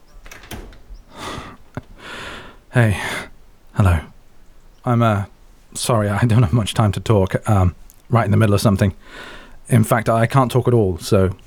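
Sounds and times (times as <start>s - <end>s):
door latch being undone: 0.0s - 1.2s
speech: 2.8s - 4.1s, 4.8s - 11.4s.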